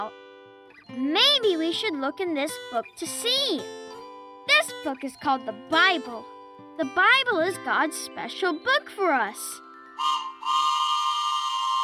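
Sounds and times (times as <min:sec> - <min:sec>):
speech: 0:01.0 - 0:03.8, 0:04.6 - 0:10.1
train whistle: 0:10.0 - 0:11.8.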